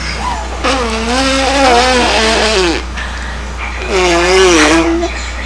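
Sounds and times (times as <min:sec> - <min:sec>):
blowing raspberries: 0:00.2 - 0:03.0, 0:03.8 - 0:05.0.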